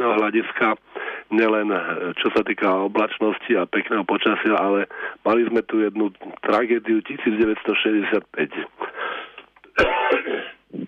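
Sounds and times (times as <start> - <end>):
speech: 0.2 - 8.9
throat clearing: 9.7 - 10.8.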